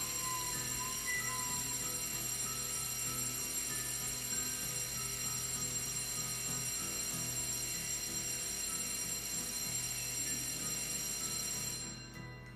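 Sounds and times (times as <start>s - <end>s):
school bell ringing: 0.0s - 12.5s.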